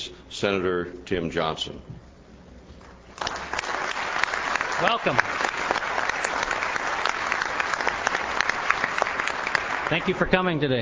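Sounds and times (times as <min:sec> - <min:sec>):
speech: 0:00.4 - 0:02.0, 0:04.8 - 0:05.4, 0:09.9 - 0:10.8
audience applause greeting a staff assistant to a United States senator: 0:03.2 - 0:10.4.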